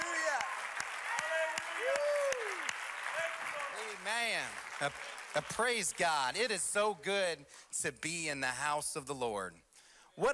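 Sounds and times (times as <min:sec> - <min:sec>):
audience hand clap applause: 0:00.0 - 0:07.0
speech: 0:04.1 - 0:09.6.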